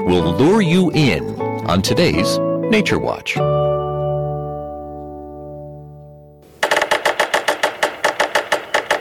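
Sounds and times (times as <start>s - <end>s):
speech: 0.1s - 3.8s
woodpecker drumming on wood: 6.4s - 8.9s.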